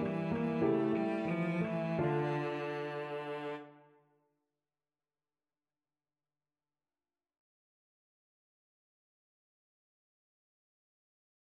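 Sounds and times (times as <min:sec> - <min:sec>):
cello: 0:00.0 - 0:04.0.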